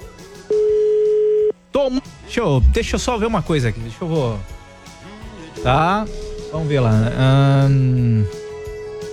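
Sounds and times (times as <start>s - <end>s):
telephone ringback tone: 0.5s - 1.5s, 5.6s - 9.1s
speech: 1.8s - 4.5s, 5.6s - 8.4s.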